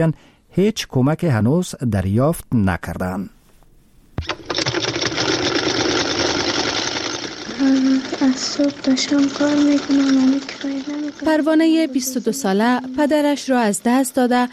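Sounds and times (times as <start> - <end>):
speech: 0.0 - 3.4, 7.6 - 14.5
embroidery sewing machine running in workshop: 4.2 - 14.5.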